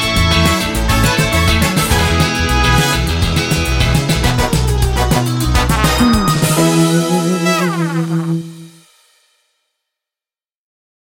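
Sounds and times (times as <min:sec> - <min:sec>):
bluegrass music: 0:00.0 - 0:08.6.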